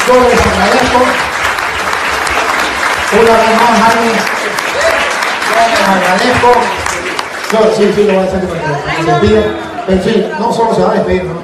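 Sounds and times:
audience applause: 0:00.0 - 0:08.7
speech: 0:00.1 - 0:01.3, 0:03.1 - 0:06.9, 0:07.5 - 0:11.4.

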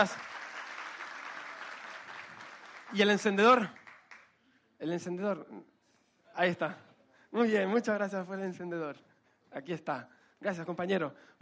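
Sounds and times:
speech: 0:00.0 - 0:00.3, 0:02.9 - 0:03.8, 0:04.8 - 0:05.7, 0:06.4 - 0:11.4
crowd applauding: 0:00.0 - 0:04.4.

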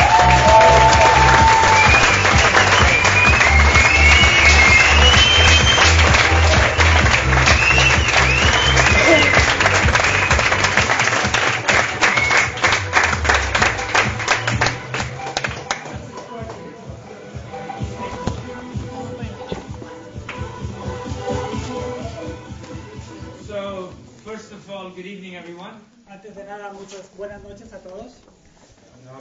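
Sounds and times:
audience applause: 0:00.0 - 0:16.0.

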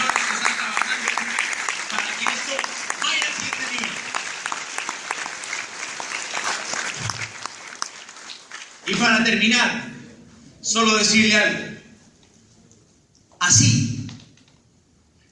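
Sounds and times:
audience applause: 0:00.0 - 0:09.2
speech: 0:08.9 - 0:09.9, 0:10.7 - 0:11.8, 0:13.5 - 0:13.8.

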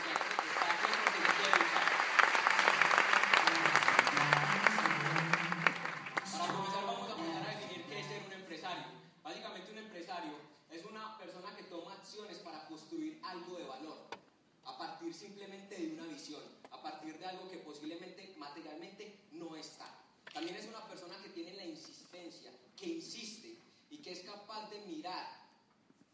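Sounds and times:
audience applause: 0:00.0 - 0:08.2
person speaking: 0:02.5 - 0:08.9.

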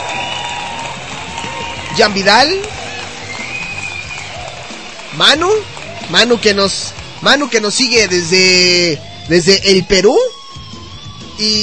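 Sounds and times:
audience applause: 0:00.0 - 0:08.9
speech: 0:02.0 - 0:02.7, 0:05.2 - 0:10.3, 0:11.4 - 0:11.6.

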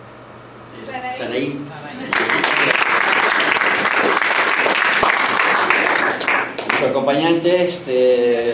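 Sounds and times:
speech: 0:00.8 - 0:03.0, 0:06.8 - 0:08.5
audience applause: 0:02.0 - 0:06.9.

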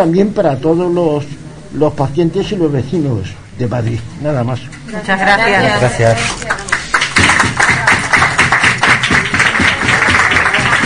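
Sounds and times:
speech: 0:00.0 - 0:06.6
applause: 0:06.4 - 0:10.8.

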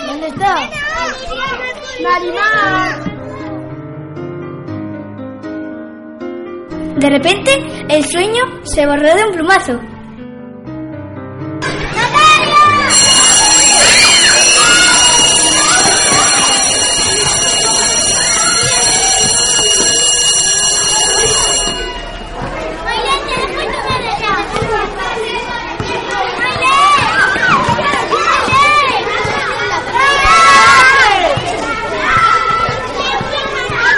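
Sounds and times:
crowd of children chattering and playing: 0:00.0 - 0:05.2, 0:11.6 - 0:33.9
school bell ringing: 0:00.7 - 0:03.1, 0:11.7 - 0:33.9
speech: 0:02.0 - 0:03.1, 0:07.0 - 0:09.9.

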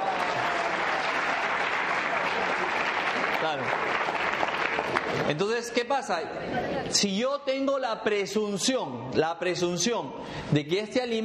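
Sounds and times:
audience applause: 0:00.0 - 0:05.4
speech: 0:05.1 - 0:11.2.

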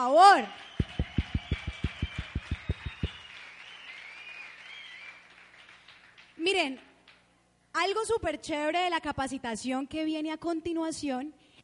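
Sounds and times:
speech: 0:00.0 - 0:00.7, 0:06.4 - 0:06.9, 0:07.8 - 0:11.4
faint hum: 0:00.0 - 0:11.6
applause: 0:00.5 - 0:07.2.

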